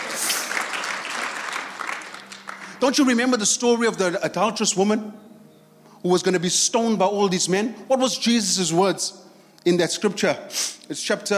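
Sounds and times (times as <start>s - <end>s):
church congregation clapping during a morning service: 0.0s - 3.5s
speech: 2.8s - 5.3s, 6.0s - 11.3s.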